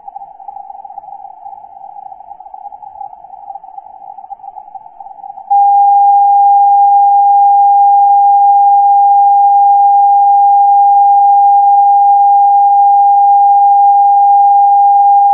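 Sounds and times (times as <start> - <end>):
CW morse code beacon: 5.5 - 15.3.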